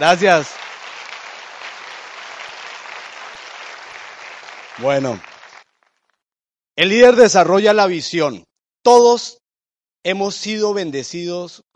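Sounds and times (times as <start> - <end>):
speech: 0.0 - 0.6, 4.8 - 5.3, 6.8 - 9.4, 10.0 - 11.7
audience applause: 0.0 - 6.0.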